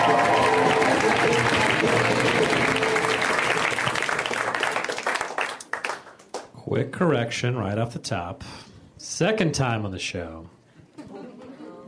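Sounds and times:
audience clapping for a comedian being introduced on stage: 0.0 - 6.6
speech: 7.0 - 10.6.

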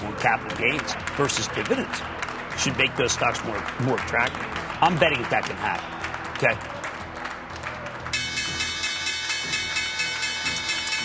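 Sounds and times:
clapping: 0.0 - 8.7
speech: 0.2 - 6.7
stock exchange opening bell ringing: 8.2 - 11.0.

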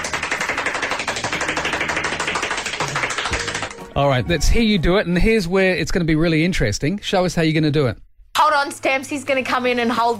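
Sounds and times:
very fast hand clapping: 0.0 - 3.8
speech: 4.0 - 10.1.

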